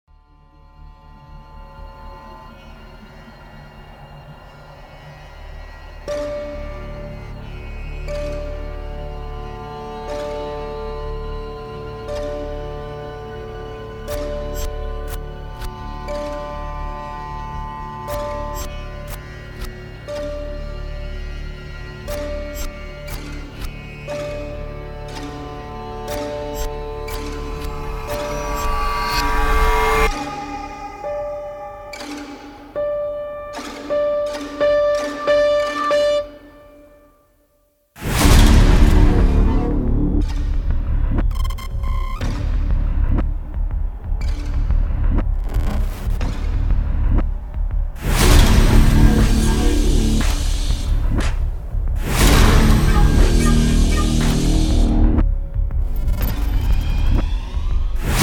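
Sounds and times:
dark creepy horror trailer music: 0.2 - 37.0, 38.0 - 58.2.

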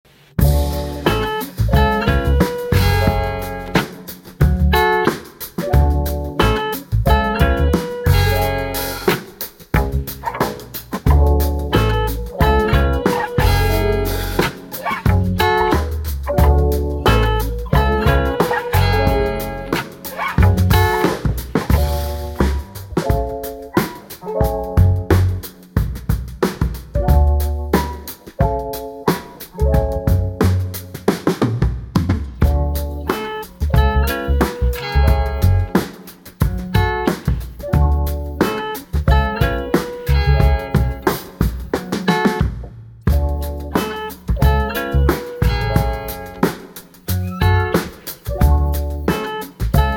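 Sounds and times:
instrumental music: 0.4 - 31.6, 32.4 - 49.9.

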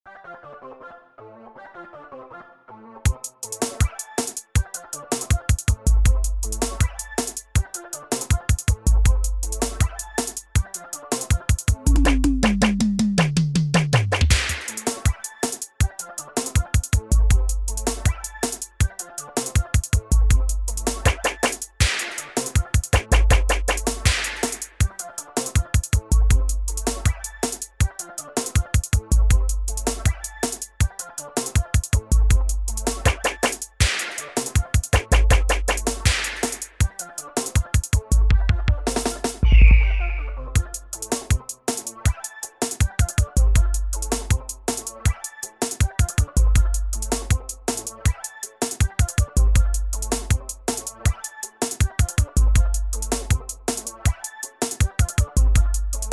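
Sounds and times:
brega funk beat: 3.1 - 39.8, 40.6 - 56.1.

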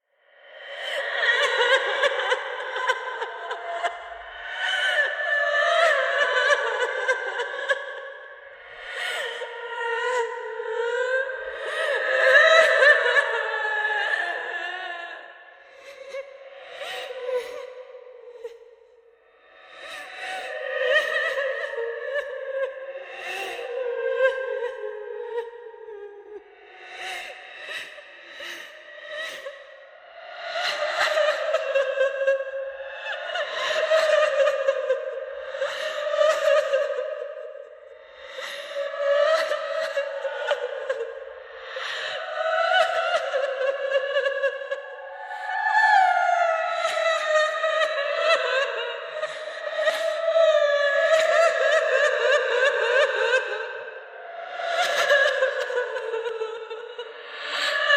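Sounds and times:
very creepy ghost woman voice: 0.2 - 18.7, 19.4 - 57.9.

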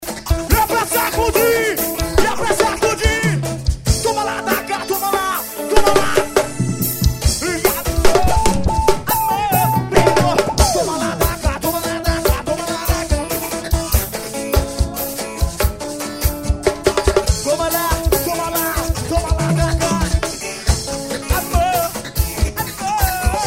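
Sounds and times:
swing music: 0.0 - 23.4.

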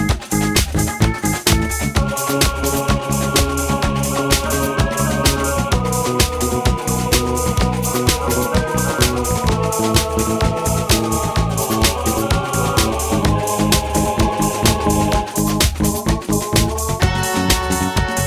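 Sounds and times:
rainforest instrumental music: 0.0 - 18.2.

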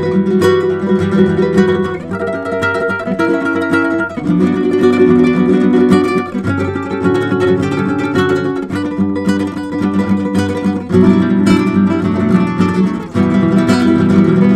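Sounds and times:
instrumental music: 0.0 - 14.5.

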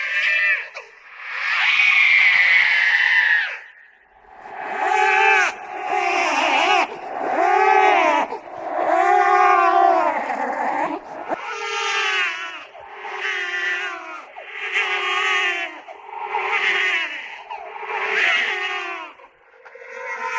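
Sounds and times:
possessed ghost baby creepy crying: 0.0 - 20.3
possessed ghost baby creepy laughing: 4.4 - 15.4.

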